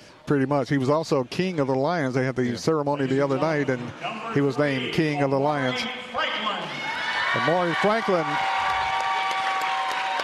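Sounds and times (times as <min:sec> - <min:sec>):
speech: 0:00.3 - 0:06.2, 0:07.3 - 0:08.5
large gym crowd clapping: 0:07.2 - 0:10.2.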